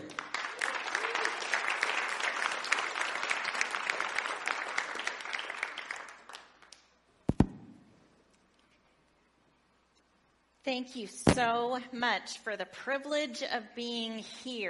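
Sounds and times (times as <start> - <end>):
audience applause welcoming a guest speaker: 0.0 - 6.8
speech: 10.7 - 14.6.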